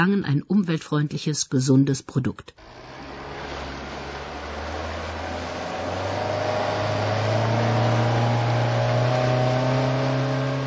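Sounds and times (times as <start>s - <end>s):
speech: 0.0s - 3.0s
motorboat engine running: 2.6s - 10.6s.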